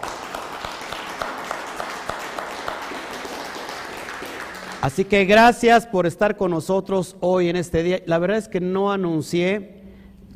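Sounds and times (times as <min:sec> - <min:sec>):
crowd applauding: 0:00.0 - 0:05.4
speech: 0:04.8 - 0:09.8.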